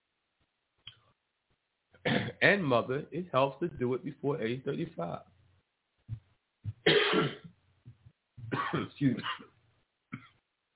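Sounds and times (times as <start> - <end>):
person choking coughing and clearing throat: 2.1 - 2.4, 6.7 - 7.5, 8.4 - 9.5, 10.1 - 10.4
speech: 2.4 - 5.3, 8.7 - 9.5.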